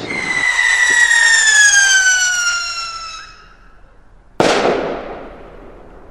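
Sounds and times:
firework bang and crackle: 0.0s - 3.6s, 4.4s - 6.1s
loud firework whistling: 0.0s - 3.8s.

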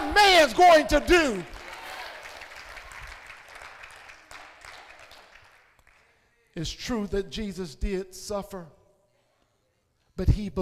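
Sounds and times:
audience clapping hands: 0.0s - 6.3s
speech: 0.2s - 1.6s, 6.6s - 8.8s, 10.2s - 10.5s.

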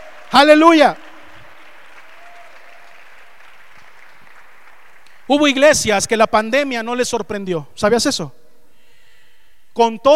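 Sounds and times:
audience applause: 0.0s - 5.4s
speech: 0.3s - 1.0s, 5.3s - 8.4s, 9.8s - 10.1s.

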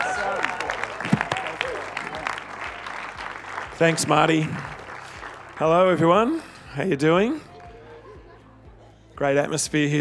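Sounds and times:
audience cheering and clapping: 0.0s - 6.2s
speech: 3.8s - 4.7s, 5.6s - 7.5s, 9.2s - 10.0s.

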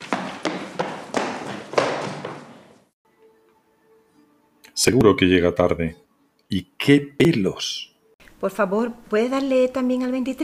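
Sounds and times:
running footsteps: 0.0s - 3.0s
noise: 0.0s - 10.4s
speech: 4.8s - 10.4s.

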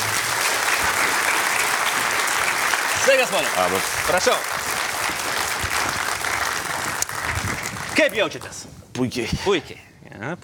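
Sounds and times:
audience applause welcoming the head of the Kaunas Žalgiris basketball club: 0.0s - 8.5s
speech: 3.1s - 4.6s, 8.0s - 10.4s.

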